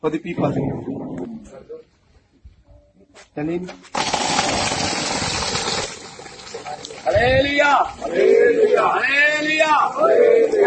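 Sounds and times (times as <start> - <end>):
speech: 0.0 - 1.7, 3.2 - 5.5, 6.7 - 10.6
water gushing from a borewell pump: 4.0 - 8.1.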